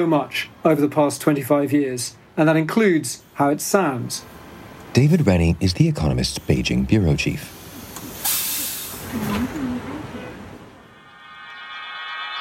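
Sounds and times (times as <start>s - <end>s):
speech: 0.0s - 7.6s, 9.1s - 9.7s
breathy hissing noise: 7.3s - 9.2s.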